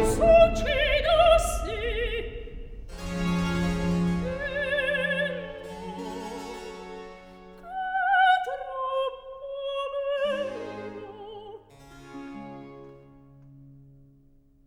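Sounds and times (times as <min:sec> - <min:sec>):
opera accompanied recitative: 0:00.0 - 0:11.6.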